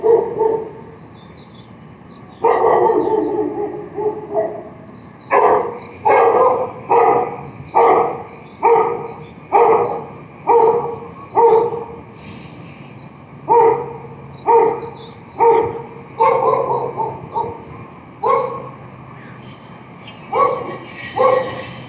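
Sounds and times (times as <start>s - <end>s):
barking: 0.0s - 0.9s, 2.4s - 12.0s, 13.5s - 18.8s, 20.3s - 21.8s.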